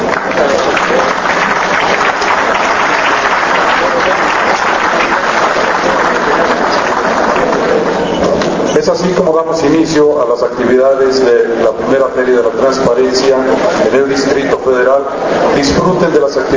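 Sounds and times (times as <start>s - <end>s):
audience applause: 0.0s - 8.1s
speech: 9.2s - 16.5s.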